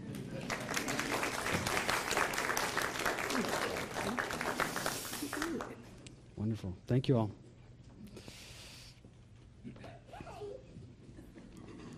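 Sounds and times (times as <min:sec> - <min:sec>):
audience applause: 0:00.0 - 0:05.8
speech: 0:06.6 - 0:07.4.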